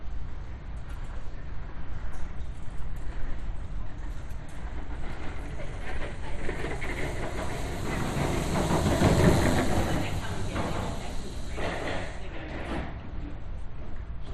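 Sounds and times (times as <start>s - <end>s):
pedestrians passing in a city boardwalk tunnel: 0.2s - 14.3s.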